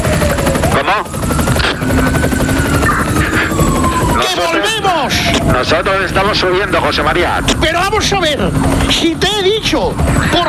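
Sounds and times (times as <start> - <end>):
helicopter of aerial mobile unit: 0.0 - 10.4
speech: 0.9 - 1.2, 5.6 - 10.4.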